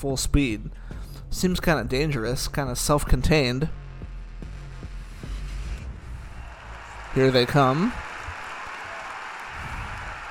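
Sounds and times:
speech: 0.0s - 3.8s, 7.1s - 8.0s
warm applause: 6.2s - 10.2s.

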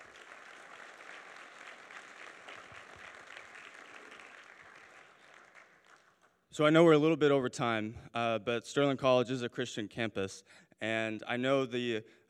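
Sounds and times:
audience applause: 0.0s - 6.3s
speech: 6.6s - 12.2s.

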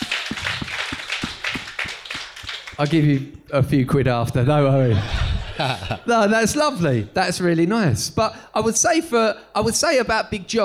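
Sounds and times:
round of applause: 0.0s - 3.2s
speech: 2.8s - 10.6s
laughter: 4.6s - 6.5s.

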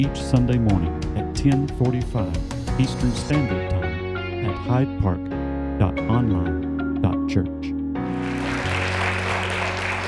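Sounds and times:
speech: 0.0s - 3.7s, 4.6s - 7.7s
audience applauding: 8.1s - 10.0s.

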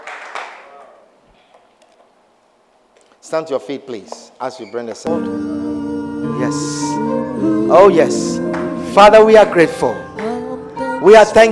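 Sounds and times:
audience clapping: 0.0s - 0.8s
speech: 3.2s - 5.7s, 6.4s - 10.1s, 11.0s - 11.4s.

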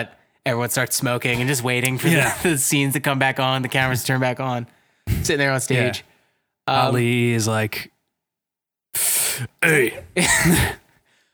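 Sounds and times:
speech: 0.0s - 6.1s, 6.7s - 7.9s, 9.0s - 10.8s
sneezes: 5.1s - 5.3s, 9.0s - 10.9s.

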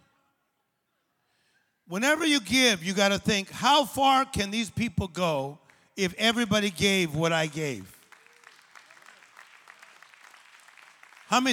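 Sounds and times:
speech: 1.9s - 8.0s, 11.3s - 11.5s
audience clapping hands: 5.6s - 11.5s.

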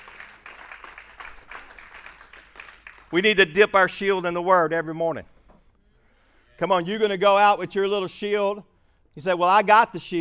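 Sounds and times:
audience clapping hands: 0.0s - 3.4s
speech: 3.1s - 5.3s, 6.6s - 10.2s.

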